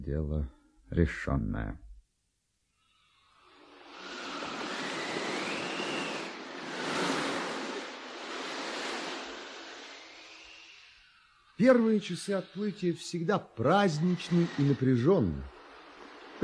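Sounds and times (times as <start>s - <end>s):
speech: 0.1s - 1.8s, 11.6s - 15.6s
sea waves surging: 3.5s - 13.0s, 13.6s - 16.4s
rushing wind blowing over sea waves: 3.7s - 16.4s.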